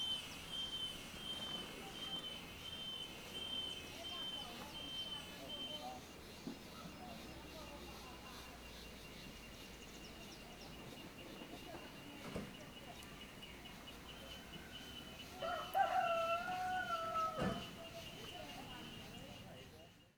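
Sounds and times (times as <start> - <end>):
cicadas at MST camp: 0.0 - 20.1
crowd chatter at MST camp: 0.0 - 20.1
rooster at MST camp: 14.6 - 18.0.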